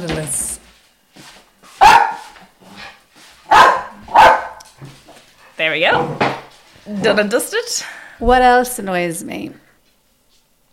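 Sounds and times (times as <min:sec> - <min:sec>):
dogs barking: 0:01.8 - 0:04.8
speech: 0:05.7 - 0:06.2, 0:06.9 - 0:09.6.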